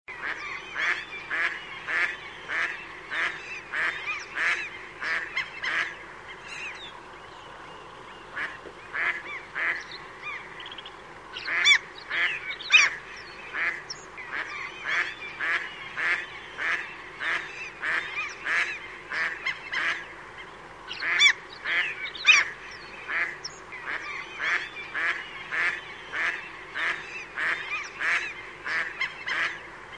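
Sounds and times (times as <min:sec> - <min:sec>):
bird honking calls: 0:00.1 - 0:29.8.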